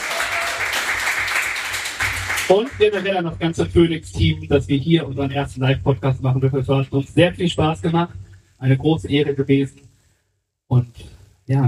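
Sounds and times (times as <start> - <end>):
live audience applause: 0.0 - 3.0
speech: 2.5 - 9.8, 10.7 - 11.6.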